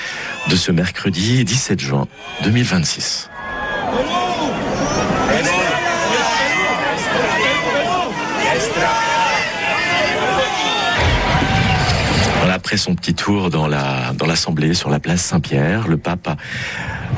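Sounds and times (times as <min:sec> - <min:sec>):
speech: 0:00.4 - 0:03.3, 0:12.7 - 0:17.1
large crowd of pilgrims cheering and calling out: 0:02.1 - 0:12.7.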